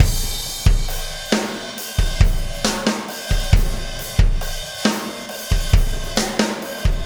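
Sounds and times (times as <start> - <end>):
processed drum kit beat: 0.0 - 7.0.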